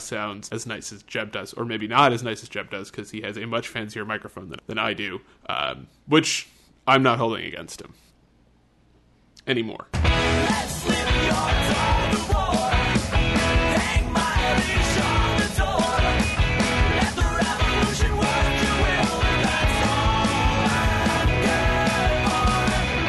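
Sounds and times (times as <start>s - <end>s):
speech: 0.1s - 8.0s, 9.5s - 12.5s
rock song: 10.0s - 23.0s.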